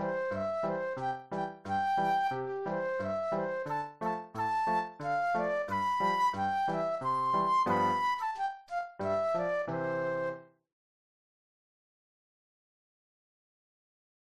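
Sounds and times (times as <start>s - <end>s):
flute solo: 0.0s - 10.5s.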